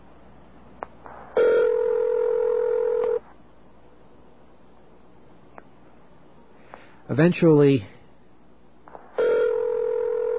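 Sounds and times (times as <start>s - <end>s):
recorded fake telephone ringing tone: 1.4s - 3.2s, 9.2s - 10.3s
speech: 7.2s - 8.0s.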